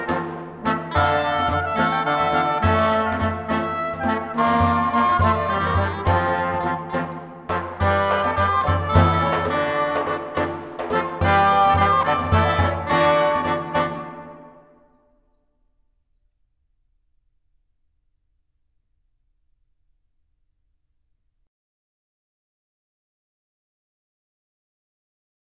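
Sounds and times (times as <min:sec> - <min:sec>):
galliard dance music: 0:00.0 - 0:14.5.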